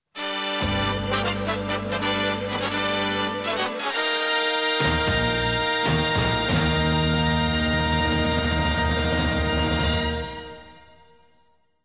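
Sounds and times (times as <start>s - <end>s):
fanfare: 0.2s - 11.2s.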